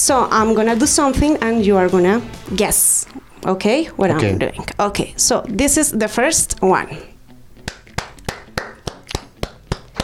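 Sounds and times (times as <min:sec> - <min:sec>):
speech: 0:00.0 - 0:07.1
hand clapping: 0:07.6 - 0:10.0.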